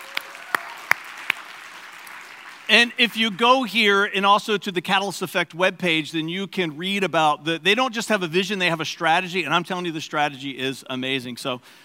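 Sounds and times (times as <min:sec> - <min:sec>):
sparse audience clapping: 0:00.0 - 0:04.0
speech: 0:02.7 - 0:11.8.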